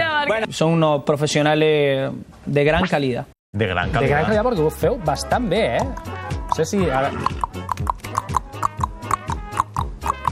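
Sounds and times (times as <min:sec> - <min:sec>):
speech: 0:00.3 - 0:07.8
horse hooves clip-clopping: 0:06.5 - 0:10.3.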